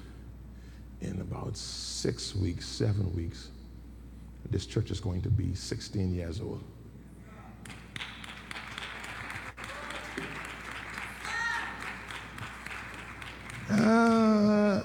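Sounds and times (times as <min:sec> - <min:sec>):
speech: 0:01.1 - 0:03.6, 0:04.4 - 0:06.8
audience clapping: 0:07.6 - 0:14.5.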